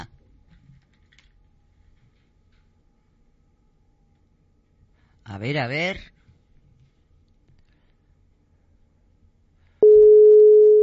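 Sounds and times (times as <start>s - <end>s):
speech: 5.3s - 6.2s
telephone ringing on the line: 9.8s - 10.8s.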